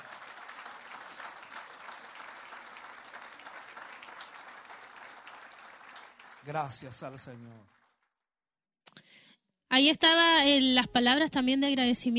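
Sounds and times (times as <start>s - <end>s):
audience applause: 0.0s - 8.1s
speech: 6.4s - 7.8s, 9.7s - 12.1s.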